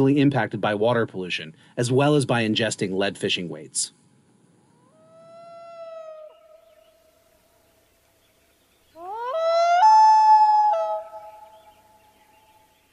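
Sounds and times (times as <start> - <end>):
speech: 0.0 - 4.0
common loon call: 4.8 - 6.6, 9.0 - 11.7.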